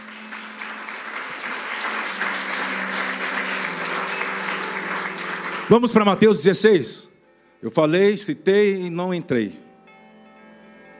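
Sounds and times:
crowd clapping: 0:00.0 - 0:06.5
speech: 0:05.7 - 0:07.0, 0:07.6 - 0:09.6.

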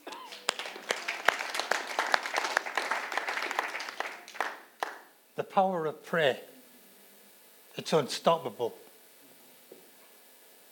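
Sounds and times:
audience applause: 0:00.0 - 0:05.1
speech: 0:05.4 - 0:06.5, 0:07.8 - 0:08.8.

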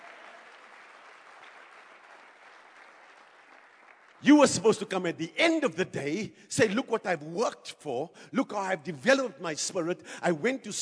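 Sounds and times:
church audience clapping: 0:00.0 - 0:05.0
speech: 0:04.2 - 0:10.7.

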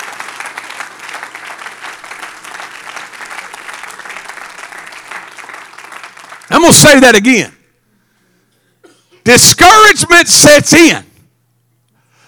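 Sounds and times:
audience clapping loudly: 0:00.0 - 0:07.3
speech: 0:06.6 - 0:07.6, 0:09.3 - 0:11.0.

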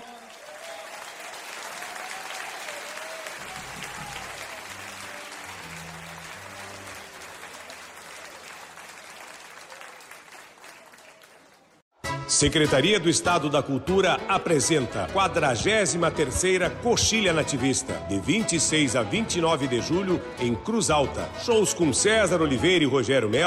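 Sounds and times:
audience applause for a pianist: 0:00.0 - 0:11.8
speech: 0:12.3 - 0:23.4.

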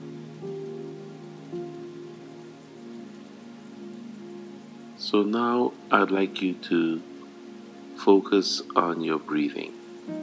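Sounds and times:
soft sustained low piano tones: 0:00.0 - 0:10.2
steady rain: 0:00.0 - 0:10.2
speech: 0:05.0 - 0:07.1, 0:08.0 - 0:10.2.

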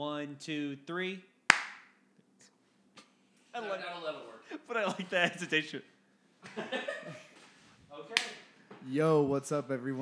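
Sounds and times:
speech: 0:00.0 - 0:01.3, 0:03.6 - 0:05.9, 0:06.5 - 0:07.2, 0:08.0 - 0:10.0
single hand clap for syncing recording: 0:01.5 - 0:02.0, 0:08.1 - 0:08.5
laughter: 0:03.6 - 0:05.8, 0:06.4 - 0:07.5.

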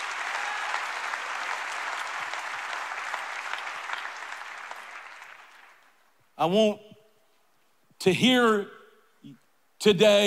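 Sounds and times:
audience clapping hands: 0:00.0 - 0:06.2
speech: 0:06.4 - 0:06.8, 0:08.0 - 0:10.2.

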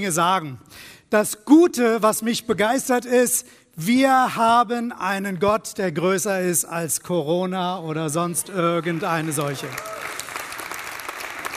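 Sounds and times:
speech: 0:00.0 - 0:10.2
audience applause: 0:08.8 - 0:11.5.

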